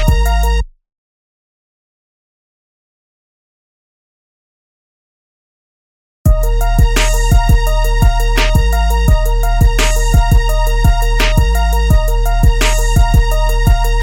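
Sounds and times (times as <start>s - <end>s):
instrumental music: 0.0s - 0.7s, 6.3s - 14.0s.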